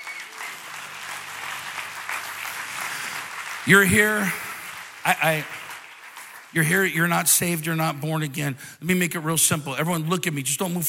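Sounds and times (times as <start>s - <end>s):
crowd clapping in a large room: 0.0s - 8.3s
speech: 3.6s - 4.4s, 5.0s - 5.6s, 6.5s - 10.8s.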